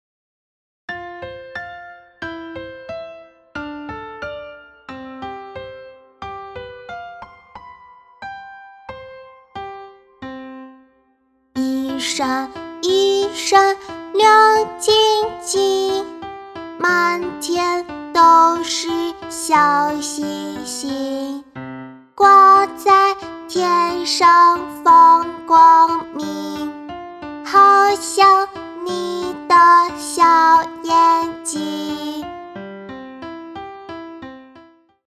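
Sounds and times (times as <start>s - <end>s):
imitation child singing a nursery song: 11.6s - 16.2s, 16.8s - 21.5s, 22.2s - 32.4s.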